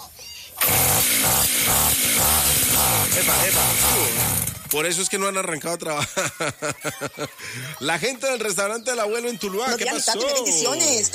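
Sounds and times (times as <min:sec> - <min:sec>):
brush cutter engine starting and running: 0:00.6 - 0:04.9
speech: 0:03.2 - 0:11.1
laughter: 0:05.8 - 0:08.2.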